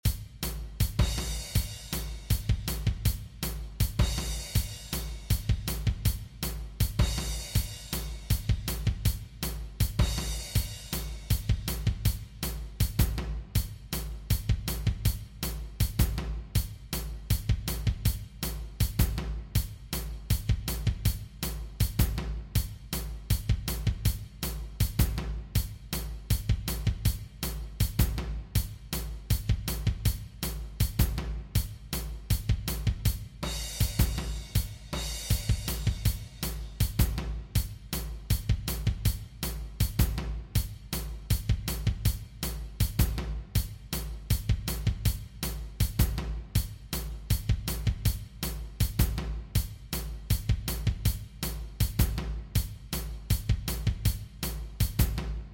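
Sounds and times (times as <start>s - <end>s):
drum kit: 0.0s - 55.5s.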